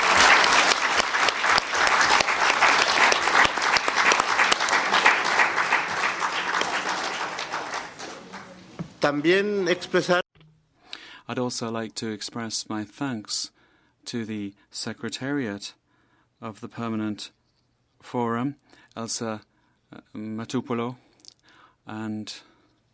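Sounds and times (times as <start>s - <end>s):
audience applause: 0.0s - 9.2s
speech: 9.1s - 10.2s, 11.4s - 15.8s, 16.4s - 17.4s, 18.0s - 21.0s, 21.9s - 22.5s.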